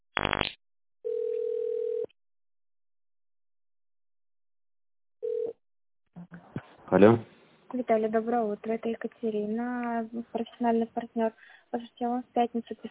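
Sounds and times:
telephone ringback tone while waiting for operator: 0:01.0 - 0:02.1, 0:05.2 - 0:05.6
speech: 0:07.0 - 0:12.8.

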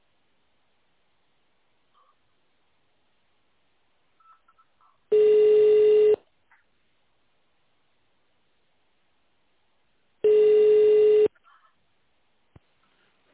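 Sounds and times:
phone line ringing tones after extension is dialed: 0:05.1 - 0:06.2, 0:10.2 - 0:11.3.

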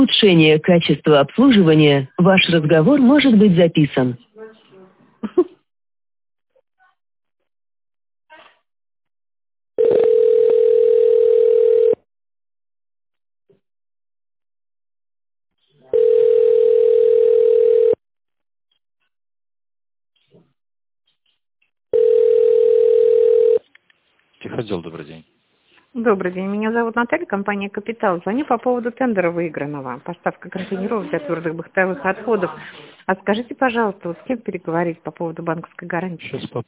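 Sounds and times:
speech: 0:00.0 - 0:04.3, 0:24.6 - 0:25.3, 0:26.0 - 0:36.6
telephone ringback tone: 0:09.8 - 0:12.0, 0:15.9 - 0:18.0, 0:21.9 - 0:23.6.

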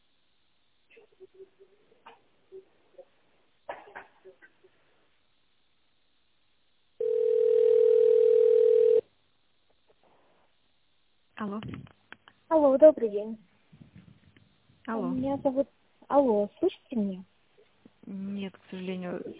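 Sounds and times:
telephone ringback tone: 0:07.0 - 0:09.0
speech: 0:12.5 - 0:13.5, 0:14.9 - 0:17.3, 0:18.1 - 0:19.3.

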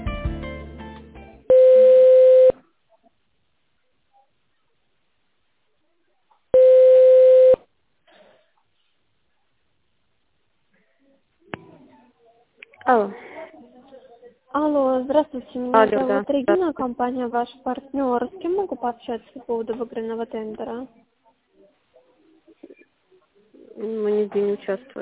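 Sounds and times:
telephone ringback tone while connecting call: 0:01.5 - 0:02.5, 0:06.6 - 0:07.6
speech: 0:12.9 - 0:13.3, 0:14.5 - 0:21.0, 0:23.8 - 0:24.9.

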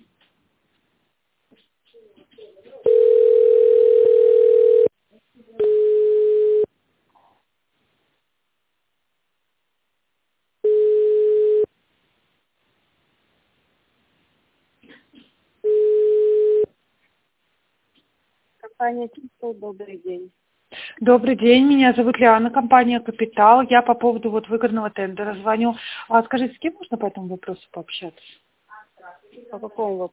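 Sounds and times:
telephone ringing tone while waiting on the line: 0:02.8 - 0:04.9, 0:05.6 - 0:06.7, 0:10.6 - 0:11.7, 0:15.6 - 0:16.7
speech: 0:18.9 - 0:28.4, 0:29.3 - 0:30.1.

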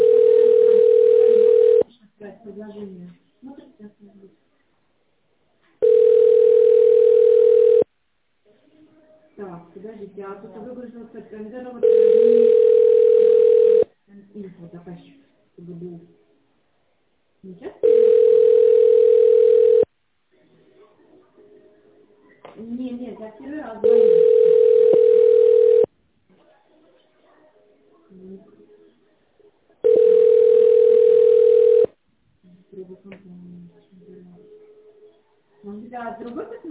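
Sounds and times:
telephone ringing tones while a call is transferred to the secretary: 0:00.0 - 0:01.8, 0:05.8 - 0:07.9, 0:11.8 - 0:13.9, 0:17.8 - 0:19.9, 0:23.8 - 0:25.9, 0:29.8 - 0:31.9.

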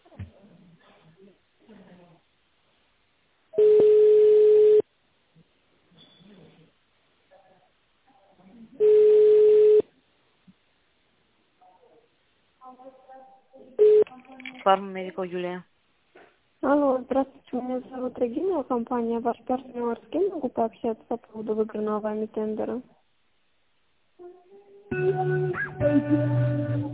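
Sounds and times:
telephone ringing tones: 0:03.6 - 0:04.8, 0:08.8 - 0:09.8
speech: 0:14.6 - 0:15.7, 0:16.6 - 0:23.0, 0:25.8 - 0:26.9.

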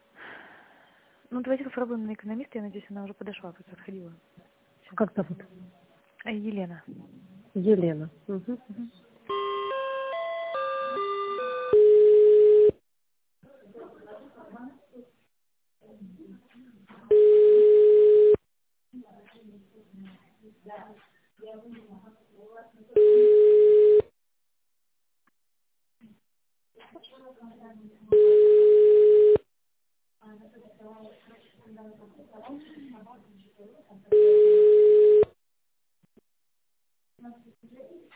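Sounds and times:
speech: 0:01.3 - 0:09.0
melodic tone sequence: 0:09.3 - 0:11.9
telephone busy signal on failed call: 0:09.3 - 0:12.8, 0:17.1 - 0:18.4, 0:23.0 - 0:24.1, 0:28.2 - 0:29.4, 0:34.1 - 0:35.4.

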